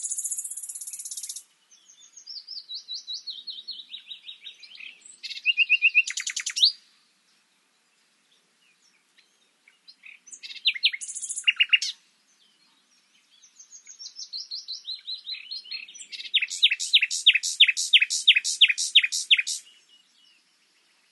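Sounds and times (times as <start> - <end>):
Common nightingale Luscinia megarhynchos song of varied phrases: 0.0 - 7.0, 7.8 - 21.0.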